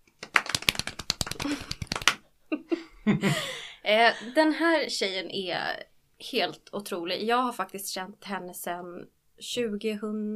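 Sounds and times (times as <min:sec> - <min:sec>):
applause: 0:00.2 - 0:02.2
speech: 0:02.6 - 0:10.3.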